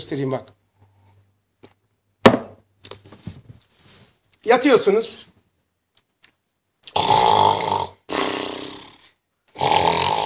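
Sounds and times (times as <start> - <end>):
speech: 0.0 - 0.6, 4.4 - 5.3
voice imitating snoring: 6.9 - 10.2.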